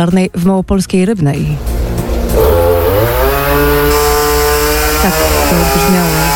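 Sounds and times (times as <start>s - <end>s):
speech: 0.0s - 1.7s, 5.0s - 6.3s
chainsaw cutting fallen tree branches: 2.3s - 6.3s.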